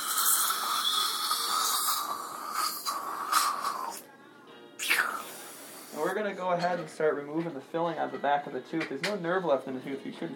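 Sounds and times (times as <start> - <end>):
dental water rinse spray hissing: 0.0 - 4.0, 4.8 - 6.1
speech: 6.1 - 10.3.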